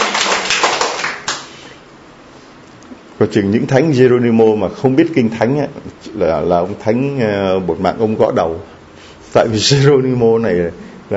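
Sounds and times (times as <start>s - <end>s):
audience applause: 0.0s - 1.6s
speech: 3.2s - 11.1s.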